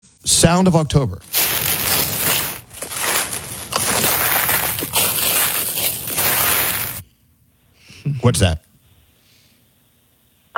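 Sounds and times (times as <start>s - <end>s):
speech: 0.3s - 1.3s, 8.2s - 8.7s
leaves rustling: 1.2s - 7.0s.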